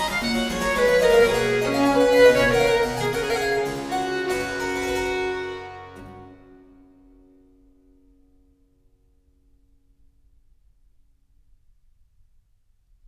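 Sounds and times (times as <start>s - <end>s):
harpsichord playing a sonata in G major allegro: 0.0s - 6.4s
violin playing a sonata in G major allegro: 0.0s - 7.0s.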